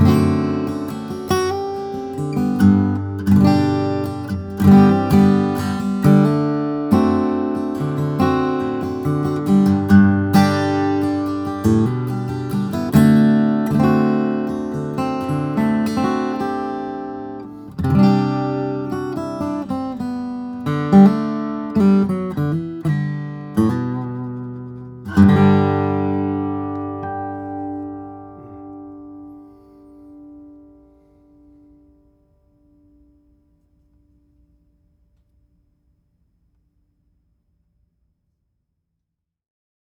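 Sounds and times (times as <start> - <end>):
000 flattop steel string guitar of koa and red spruce: 0.0 - 32.1.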